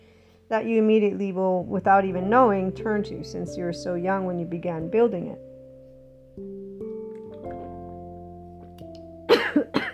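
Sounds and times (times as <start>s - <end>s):
speech: 0.5s - 5.5s, 6.4s - 6.6s
sustained musical tones: 0.7s - 9.3s
person coughing after something went down the wrong pipe: 9.3s - 9.9s.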